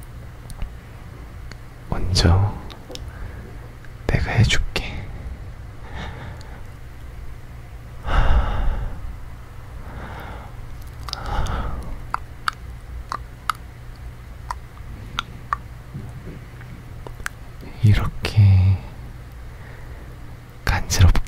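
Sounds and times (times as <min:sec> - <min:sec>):
low steady hum: 0:00.0 - 0:21.2
speech: 0:02.1 - 0:02.6, 0:04.2 - 0:04.7
ASMR soft breathy mouth swells: 0:09.8 - 0:13.2
ASMR ear-licking wet mouth clicks and smacks: 0:10.7 - 0:17.4.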